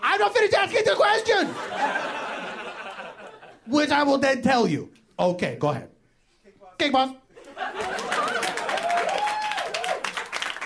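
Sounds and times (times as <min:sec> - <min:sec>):
speech: 0:00.2 - 0:02.1, 0:03.7 - 0:05.9, 0:06.8 - 0:08.0
laughter: 0:01.2 - 0:03.7, 0:07.3 - 0:09.3
applause: 0:07.8 - 0:10.6.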